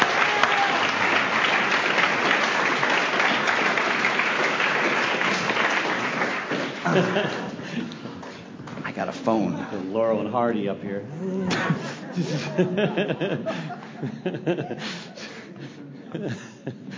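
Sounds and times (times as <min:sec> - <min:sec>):
audience applause: 0:00.0 - 0:08.9
laughter: 0:06.5 - 0:08.4, 0:11.3 - 0:16.9
speech: 0:06.9 - 0:07.4, 0:09.0 - 0:15.2, 0:16.1 - 0:16.9.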